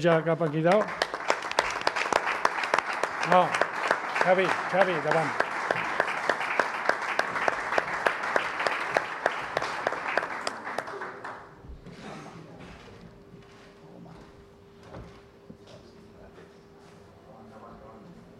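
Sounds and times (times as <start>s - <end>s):
speech: 0.0s - 1.0s, 3.3s - 3.6s, 4.2s - 5.4s
audience applause: 0.0s - 11.6s.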